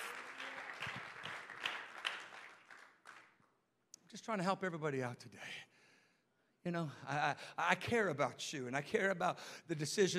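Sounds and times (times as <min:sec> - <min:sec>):
audience clapping hands: 0:00.0 - 0:03.6
speech: 0:04.1 - 0:05.7, 0:06.6 - 0:10.1.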